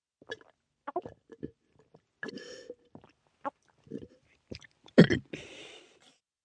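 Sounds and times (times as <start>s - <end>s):
child drinking, swallowing and gulping: 0.2s - 5.3s
child burping: 5.0s - 5.3s.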